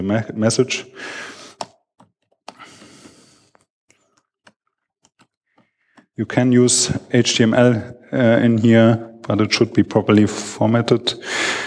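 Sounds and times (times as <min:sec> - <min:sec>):
speech: 0:00.0 - 0:01.4, 0:06.2 - 0:11.6
typing on a computer keyboard: 0:01.6 - 0:02.7, 0:03.5 - 0:06.1.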